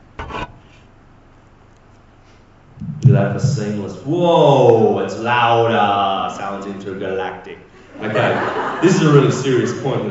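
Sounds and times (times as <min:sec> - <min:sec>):
microphone being put down and switched: 0:02.8 - 0:03.7
speech: 0:03.1 - 0:10.1
laughter: 0:07.8 - 0:10.1.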